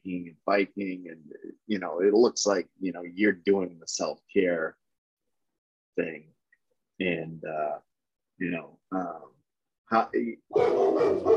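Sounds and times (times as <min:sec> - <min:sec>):
speech: 0:00.2 - 0:04.8, 0:06.0 - 0:06.4, 0:07.0 - 0:11.3
dog barking: 0:10.5 - 0:11.3.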